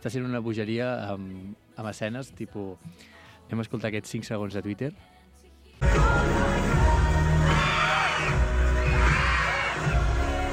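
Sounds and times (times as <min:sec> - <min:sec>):
speech: 0:00.0 - 0:05.2, 0:05.8 - 0:06.8
cinema audience screaming: 0:07.4 - 0:10.5.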